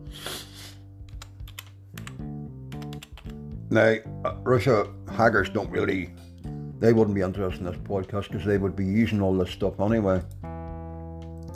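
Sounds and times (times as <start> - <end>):
typing on a computer keyboard: 1.1 - 2.2, 2.8 - 3.4
speech: 3.7 - 6.2, 6.8 - 10.4.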